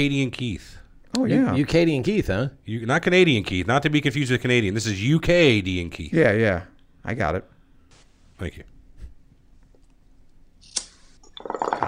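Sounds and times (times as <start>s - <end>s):
speech: 0.0s - 7.5s, 8.4s - 8.7s
sharp click: 10.6s - 11.0s
bong hit bubbling: 11.4s - 11.8s.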